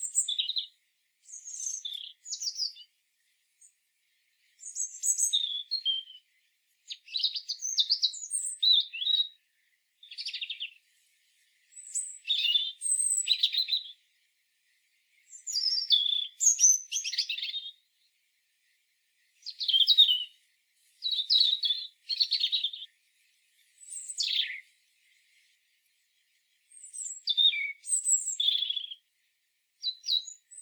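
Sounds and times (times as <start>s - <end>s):
European robin singing high phrases: 0.0s - 0.7s, 1.3s - 2.9s, 6.9s - 9.4s, 11.8s - 14.0s, 15.3s - 17.8s, 19.4s - 20.3s, 21.0s - 22.9s, 23.8s - 24.6s, 26.7s - 29.0s, 29.8s - 30.6s.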